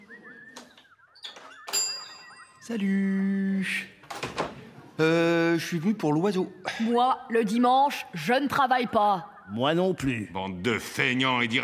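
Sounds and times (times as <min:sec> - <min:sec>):
doorbell ringing: 0:01.6 - 0:02.7
speech: 0:02.7 - 0:03.9, 0:05.0 - 0:11.6.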